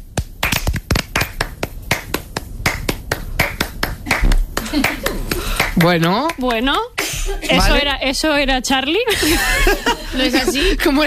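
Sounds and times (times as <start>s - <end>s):
rhythmic hand clapping: 0.0s - 7.2s
speech: 4.7s - 5.2s, 5.8s - 11.0s.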